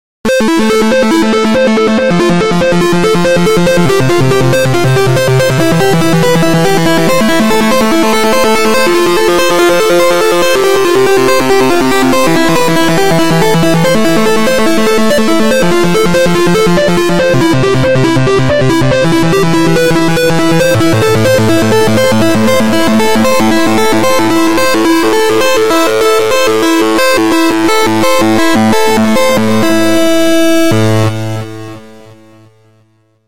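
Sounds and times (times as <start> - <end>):
distorted arpeggio: 0.3 - 32.7.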